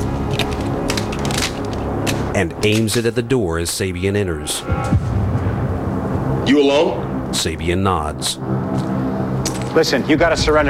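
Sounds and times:
gun being loaded: 0.0s - 3.2s
low hum: 0.0s - 9.7s
speech: 2.4s - 5.2s, 6.5s - 8.9s, 9.8s - 10.6s.

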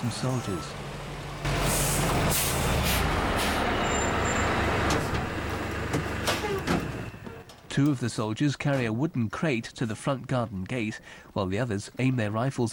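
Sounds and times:
speech: 0.0s - 0.9s, 2.0s - 3.1s, 7.8s - 12.7s
trucks pulling up and stopping: 0.0s - 7.9s.

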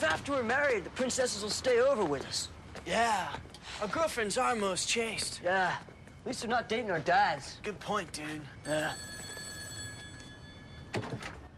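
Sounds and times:
speech: 0.1s - 9.1s
telephone ringing: 8.6s - 11.5s.

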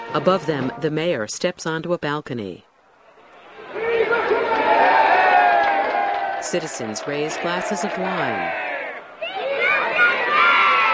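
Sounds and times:
speech: 0.1s - 2.7s, 6.4s - 8.6s
school children cheering: 3.2s - 10.9s.

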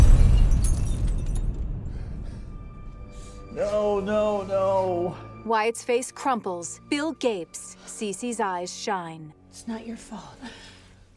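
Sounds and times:
glass lens shattering on a concrete floor: 0.0s - 1.6s
steady low rumble: 0.0s - 3.3s
speech: 3.6s - 10.8s.

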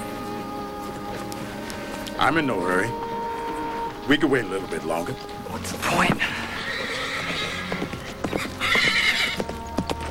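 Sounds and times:
speech: 2.2s - 3.0s, 4.0s - 6.4s
horse galloping: 3.0s - 10.0s
horse whinnying as it rears: 5.8s - 9.5s.

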